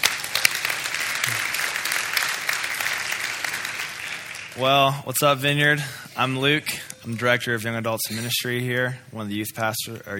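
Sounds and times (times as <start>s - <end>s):
audience applause: 0.0s - 5.1s
speech: 4.6s - 10.1s.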